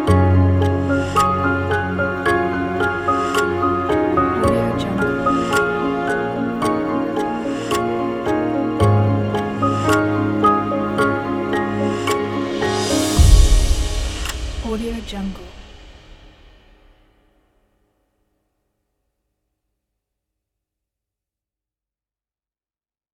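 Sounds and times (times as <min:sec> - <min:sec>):
emotional cinematic ambient music: 0:00.0 - 0:16.6.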